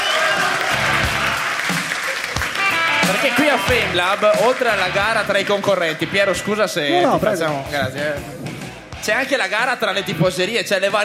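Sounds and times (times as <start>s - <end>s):
audience clapping in an auditorium: 0.0s - 8.6s
speech: 3.5s - 11.0s.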